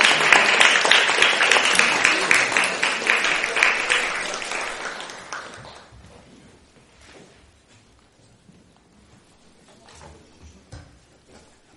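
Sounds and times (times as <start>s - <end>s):
crowd applause: 0.0s - 5.9s.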